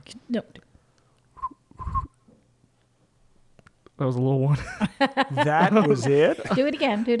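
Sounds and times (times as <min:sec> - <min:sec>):
speech: 0:00.1 - 0:00.7, 0:04.0 - 0:07.1
short quivery whistle: 0:01.4 - 0:02.2
laughter: 0:04.5 - 0:07.1.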